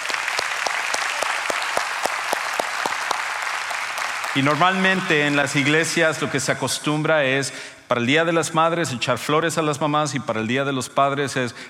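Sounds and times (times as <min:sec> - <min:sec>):
audience applause: 0:00.0 - 0:06.2
speech: 0:04.4 - 0:11.6.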